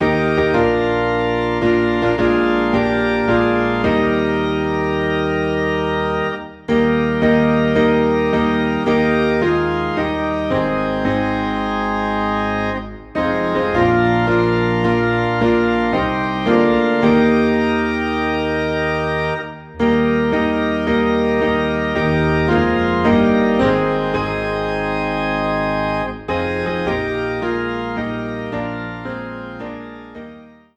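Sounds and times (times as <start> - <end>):
organ: 0.0 - 30.7
piano: 0.0 - 30.7.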